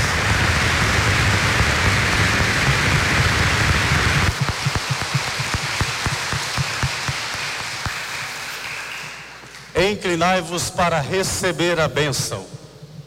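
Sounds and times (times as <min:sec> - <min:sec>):
applause: 0:00.0 - 0:09.8
speech: 0:09.8 - 0:12.6.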